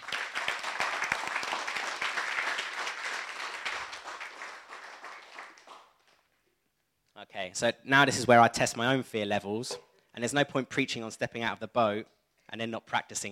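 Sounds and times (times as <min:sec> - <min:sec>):
crowd applauding: 0:00.0 - 0:06.3
speech: 0:07.4 - 0:13.3.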